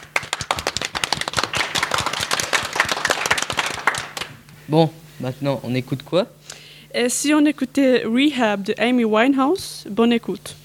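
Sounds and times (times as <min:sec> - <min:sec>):
small group applauding after a song: 0:00.0 - 0:04.4
speech: 0:04.7 - 0:10.6.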